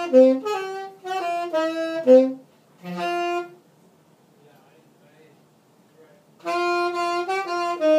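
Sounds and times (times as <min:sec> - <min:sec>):
tenor saxophone being practised: 0:00.0 - 0:03.6, 0:06.4 - 0:07.9.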